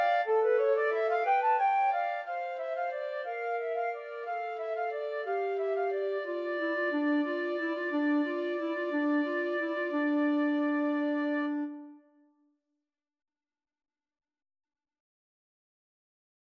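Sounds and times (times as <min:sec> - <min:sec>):
flute and clarinet duet: 0:00.0 - 0:12.1.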